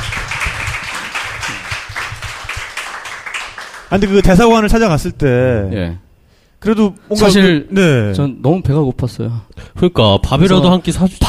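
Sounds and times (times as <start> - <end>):
clapping: 0.0 - 4.4
speech: 3.9 - 6.0, 6.6 - 11.2.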